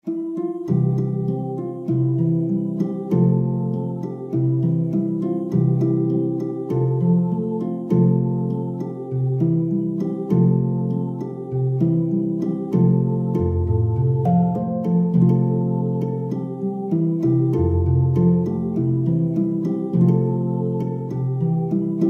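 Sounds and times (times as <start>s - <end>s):
harp: 0.0s - 22.0s.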